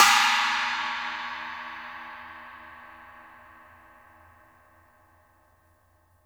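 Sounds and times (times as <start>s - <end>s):
cymbal crash: 0.0s - 3.5s.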